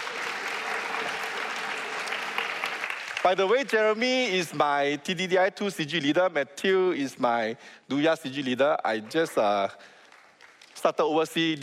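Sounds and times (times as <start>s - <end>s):
round of applause: 0.0s - 4.0s, 9.0s - 10.9s
speech: 3.2s - 10.0s, 10.8s - 11.6s.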